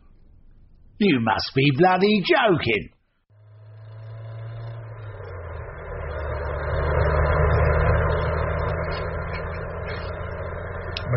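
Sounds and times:
speech: 0:01.0 - 0:03.0
car engine droning while driving: 0:03.3 - 0:11.1.

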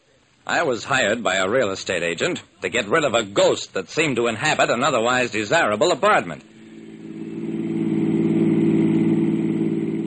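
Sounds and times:
speech: 0:00.4 - 0:06.5
car engine running: 0:06.4 - 0:10.0.

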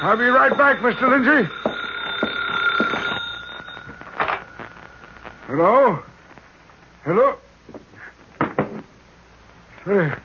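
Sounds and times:
speech: 0:00.0 - 0:01.7, 0:05.5 - 0:06.1, 0:07.0 - 0:07.4, 0:09.8 - 0:10.2
office telephone bell ringing: 0:00.0 - 0:05.3.

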